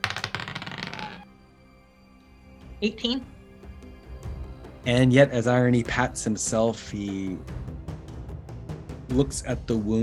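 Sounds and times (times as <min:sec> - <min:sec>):
dice rattling and tumbling across a surface: 0:00.0 - 0:01.2
speech: 0:02.8 - 0:03.4, 0:04.8 - 0:07.6, 0:09.1 - 0:10.0.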